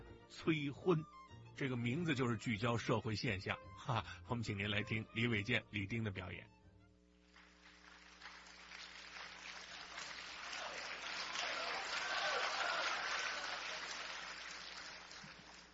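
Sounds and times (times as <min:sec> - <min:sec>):
speech: 0:00.3 - 0:06.6
audience applause: 0:07.3 - 0:15.7.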